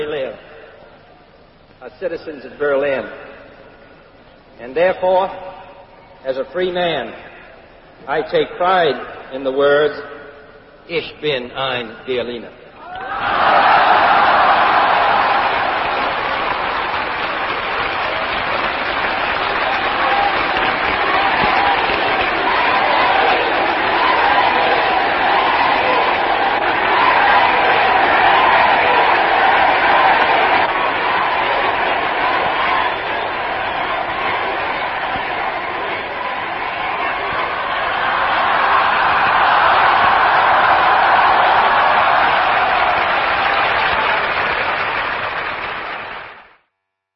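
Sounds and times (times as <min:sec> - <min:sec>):
speech: 0:01.8 - 0:03.3, 0:04.6 - 0:07.3, 0:08.0 - 0:10.1, 0:10.9 - 0:12.6
crowd yelling: 0:12.8 - 0:46.4.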